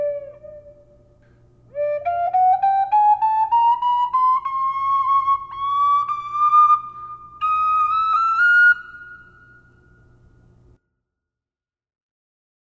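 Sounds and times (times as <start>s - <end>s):
flutes playing high D: 0.0s - 1.1s, 1.7s - 10.2s.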